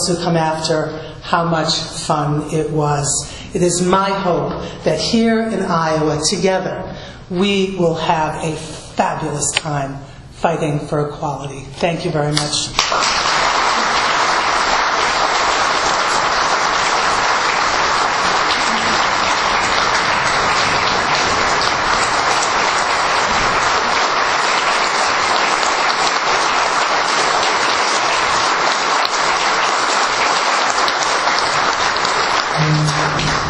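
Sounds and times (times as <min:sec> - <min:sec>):
speech: 0:00.1 - 0:13.0
large crowd applauding: 0:12.8 - 0:33.4.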